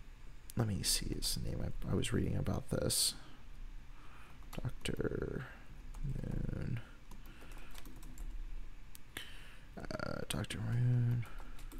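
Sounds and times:
speech: 0:00.6 - 0:03.3, 0:04.6 - 0:06.5, 0:09.8 - 0:11.4
fast typing on a computer keyboard: 0:05.9 - 0:08.4, 0:10.6 - 0:11.7.

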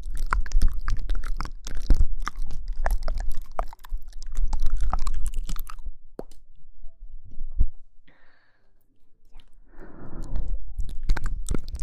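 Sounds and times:
wet mouth clicks, smacks and crunchy chewing: 0:00.0 - 0:06.4, 0:09.2 - 0:11.8
breathy exhale: 0:08.1 - 0:08.8, 0:09.7 - 0:10.6.

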